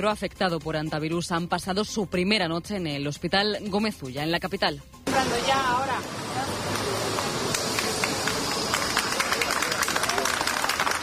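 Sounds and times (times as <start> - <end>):
speech: 0.0 - 6.2
group of people applauding arrivals at hospital: 6.5 - 11.0.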